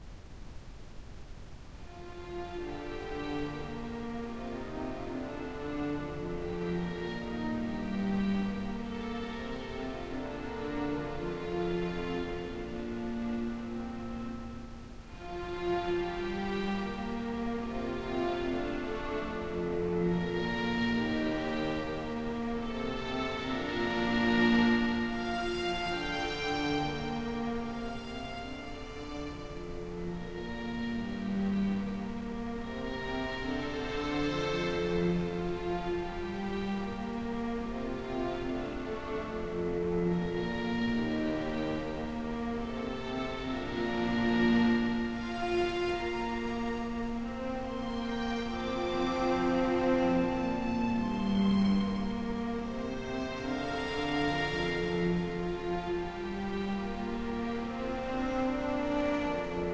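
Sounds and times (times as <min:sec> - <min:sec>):
music: 0:01.8 - 0:59.7.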